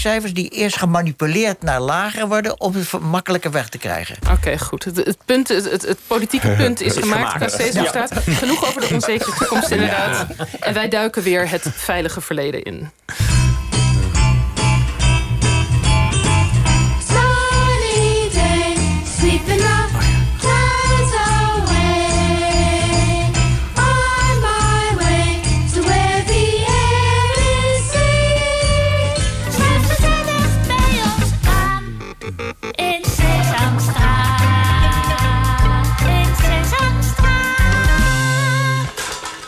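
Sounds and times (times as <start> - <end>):
speech: 0.0 - 13.6
laughter: 6.2 - 11.8, 32.0 - 37.0
children's TV show theme song in American original and Dutch version: 13.2 - 39.4.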